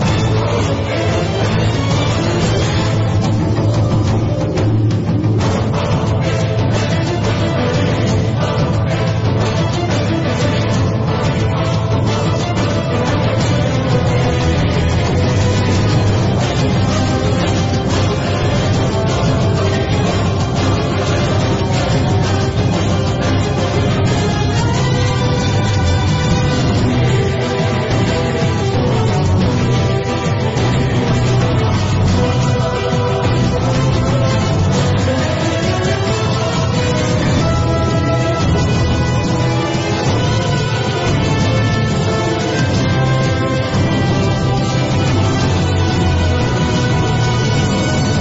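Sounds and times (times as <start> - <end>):
battle background music: 0.0 - 48.1.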